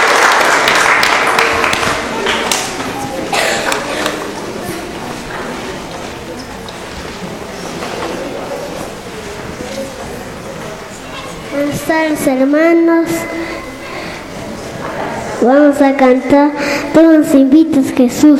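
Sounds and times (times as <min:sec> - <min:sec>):
crowd clapping: 0:00.0 - 0:04.4
speech: 0:12.0 - 0:13.5, 0:15.4 - 0:18.3.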